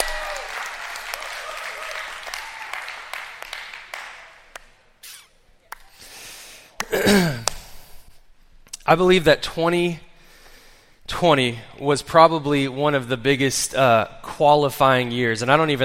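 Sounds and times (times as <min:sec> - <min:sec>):
audience clapping: 0:00.0 - 0:05.0, 0:05.7 - 0:06.1
speech: 0:08.9 - 0:10.1, 0:11.2 - 0:15.8.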